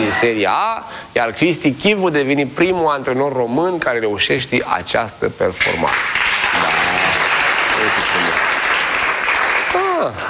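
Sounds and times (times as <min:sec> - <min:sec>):
speech: 0:00.1 - 0:06.2
applause: 0:05.6 - 0:10.2.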